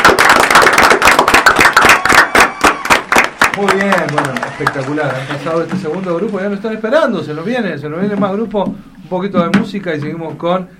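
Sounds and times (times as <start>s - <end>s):
crowd applauding: 0.0s - 6.5s
speech: 3.6s - 10.7s.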